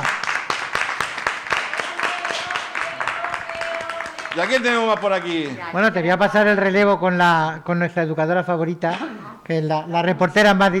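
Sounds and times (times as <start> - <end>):
audience applause: 0.0 - 5.8
speech: 4.4 - 10.7.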